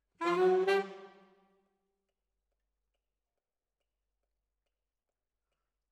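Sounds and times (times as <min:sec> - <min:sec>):
saxophone: 0:00.1 - 0:01.5.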